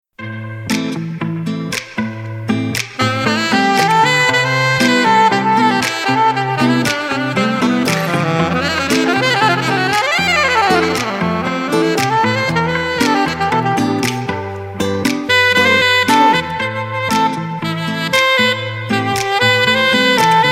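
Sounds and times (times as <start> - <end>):
saxophone: 0.2 - 20.4.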